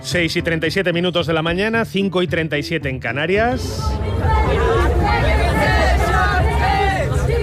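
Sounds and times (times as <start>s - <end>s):
speech: 0.1s - 5.8s
crowd babble and shouts at a Berlin street protest over housing prices: 3.0s - 7.4s.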